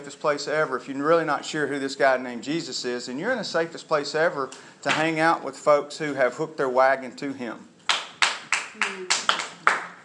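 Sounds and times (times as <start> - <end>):
speech: 0.1 - 7.7, 8.8 - 9.2
clapping: 7.9 - 10.0.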